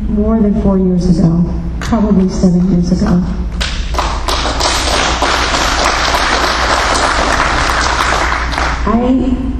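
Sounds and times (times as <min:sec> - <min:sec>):
speech: 0:00.2 - 0:03.5, 0:08.8 - 0:09.5
audience applause: 0:03.6 - 0:08.9.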